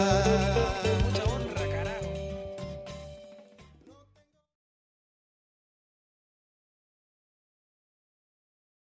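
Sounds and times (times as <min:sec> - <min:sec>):
latin blues music: 0:00.0 - 0:04.2.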